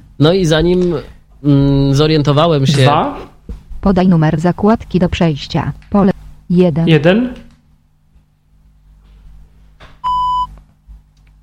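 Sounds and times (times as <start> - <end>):
speech: 0.2 - 7.4
Penfriend electronic device beep signal: 10.0 - 10.5.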